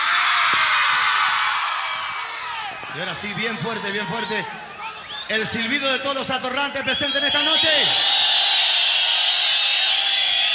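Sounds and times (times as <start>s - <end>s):
audience shouting and cheering on request: 0.0s - 10.5s
speech: 3.0s - 4.6s, 5.3s - 8.2s.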